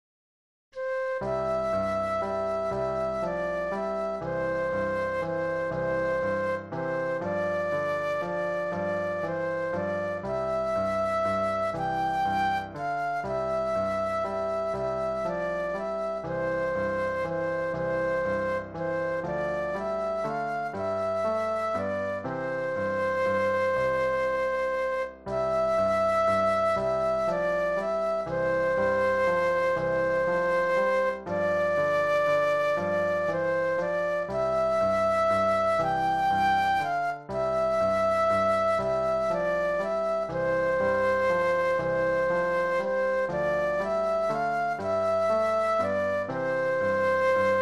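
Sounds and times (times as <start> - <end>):
flute solo: 0.8 - 47.5.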